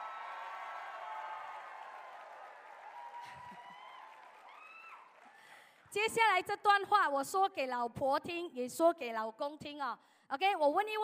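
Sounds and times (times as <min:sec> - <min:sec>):
audience applause: 0:00.0 - 0:05.9
speech: 0:05.9 - 0:11.0.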